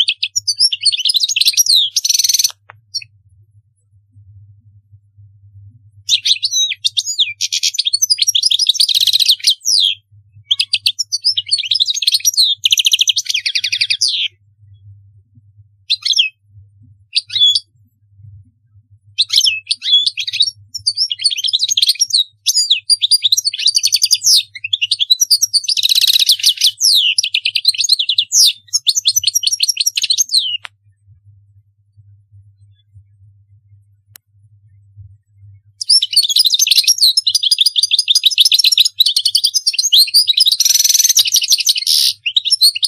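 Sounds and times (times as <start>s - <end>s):
European goldfinch song: 0.0s - 3.1s, 6.1s - 14.4s, 17.1s - 17.7s, 19.2s - 30.7s, 35.8s - 42.8s
faint hum: 2.4s - 6.3s, 13.3s - 19.2s, 30.6s - 35.8s.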